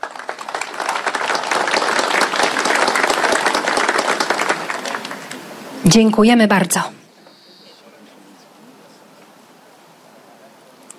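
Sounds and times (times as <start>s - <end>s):
audience applause at an awards ceremony: 0.0s - 5.5s
speech: 5.9s - 7.0s.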